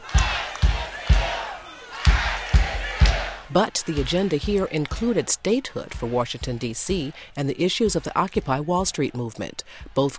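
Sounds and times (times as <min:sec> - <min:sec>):
crowd chanting at a march: 0:00.0 - 0:07.2
speech: 0:03.5 - 0:10.1.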